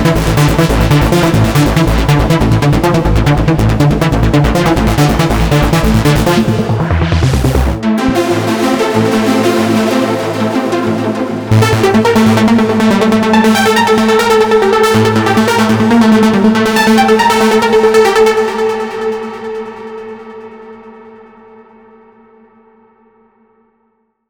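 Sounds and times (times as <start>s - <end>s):
arpeggio: 0.0s - 19.4s.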